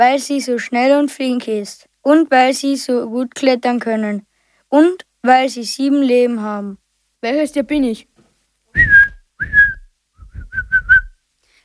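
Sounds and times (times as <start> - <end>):
speech: 0.0 - 8.1
person whistling bird call imitation: 8.8 - 11.1.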